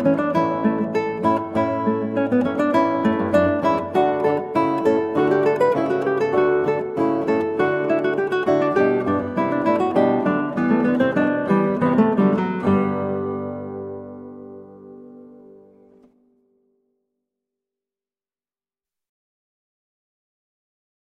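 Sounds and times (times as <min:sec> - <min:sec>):
classical guitar piece: 0:00.0 - 0:16.7.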